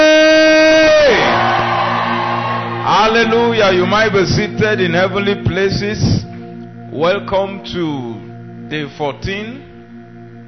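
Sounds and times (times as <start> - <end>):
audience shouting: 0.5 - 3.8
speech: 3.2 - 6.2, 6.9 - 9.7.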